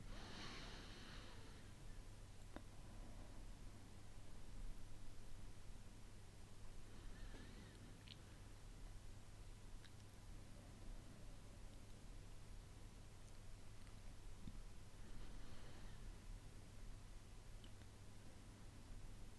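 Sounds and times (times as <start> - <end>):
breathing in through the nose and out through the mouth during a breathing exercise: 0.0 - 1.8, 6.8 - 8.1, 15.0 - 16.2
low hum and hiss: 0.0 - 19.3.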